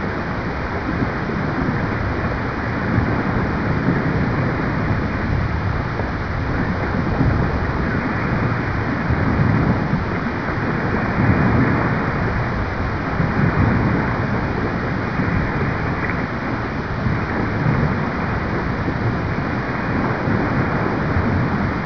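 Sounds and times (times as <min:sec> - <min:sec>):
waves: 0:00.0 - 0:21.8.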